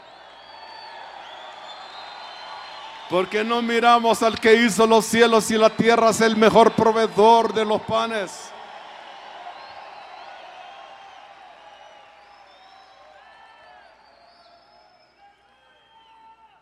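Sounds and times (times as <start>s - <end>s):
audience shouting hallelujah: 0.0s - 11.7s
speech: 3.1s - 8.5s.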